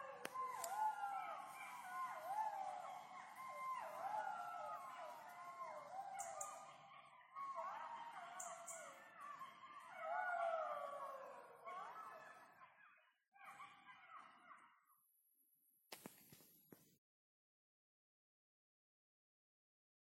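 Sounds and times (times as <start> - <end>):
Golden jackals (Canis aureus) howling together: 0.0 - 12.8.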